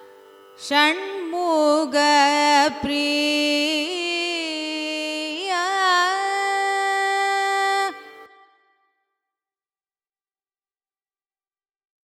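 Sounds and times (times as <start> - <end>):
carnatic music raga phrases: 0.0 - 8.8.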